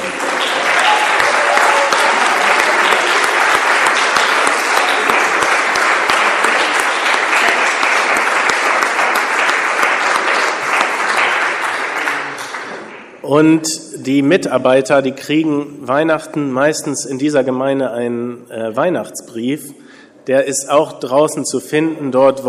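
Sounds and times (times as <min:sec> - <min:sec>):
audience applause: 0:00.0 - 0:13.2
speech: 0:13.4 - 0:22.4.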